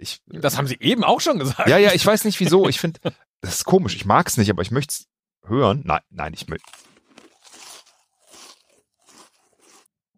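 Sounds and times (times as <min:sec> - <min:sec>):
speech: 0:00.0 - 0:06.9
laughter: 0:01.3 - 0:03.2
chewing chips with open mouth: 0:06.6 - 0:09.9.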